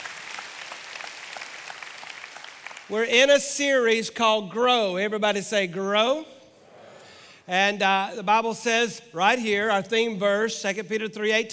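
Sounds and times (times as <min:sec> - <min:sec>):
church congregation applauding: 0:00.0 - 0:03.4
speech: 0:02.9 - 0:06.4, 0:07.5 - 0:11.5.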